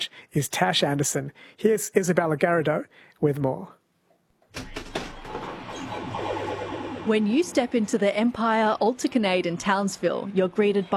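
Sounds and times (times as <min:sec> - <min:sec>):
speech: 0:00.3 - 0:03.8, 0:07.1 - 0:10.9
pinball machines whirring in an arcade in Townsville: 0:04.6 - 0:10.9.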